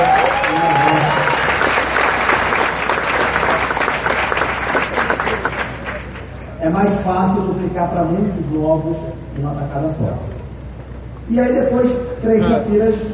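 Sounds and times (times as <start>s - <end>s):
audience applause: 0.0s - 6.3s
speech: 7.1s - 10.3s, 11.3s - 13.1s.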